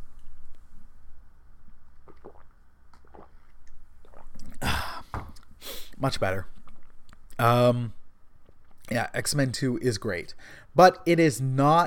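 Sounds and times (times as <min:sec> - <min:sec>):
person sipping water: 0:01.9 - 0:07.4
speech: 0:06.0 - 0:06.6, 0:07.4 - 0:08.0, 0:08.9 - 0:11.8.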